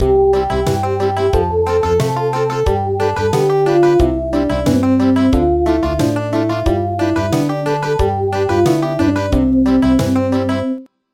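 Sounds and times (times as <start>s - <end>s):
country music: 0.0s - 10.9s.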